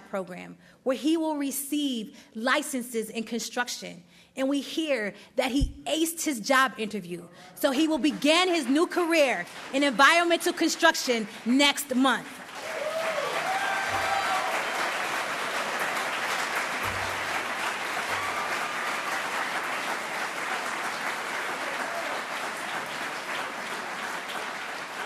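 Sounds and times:
speech: 0.1 - 12.4
large audience applause: 12.4 - 25.0.

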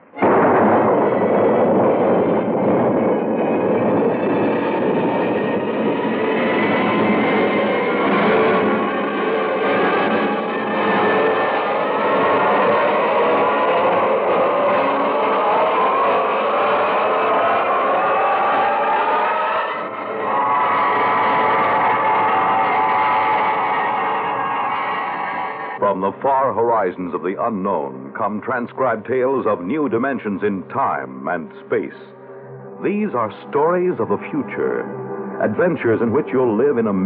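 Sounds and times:
rocket blasting off: 0.0 - 25.8
speech: 26.2 - 32.2, 32.8 - 37.0.

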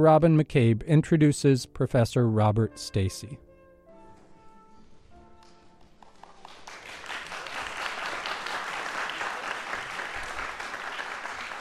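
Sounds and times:
speech: 0.0 - 3.4
audience applause: 5.8 - 11.5.

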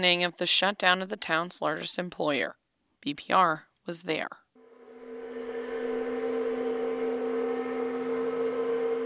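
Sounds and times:
speech: 0.0 - 4.4
paper mill noon whistle blowing: 4.6 - 9.0.

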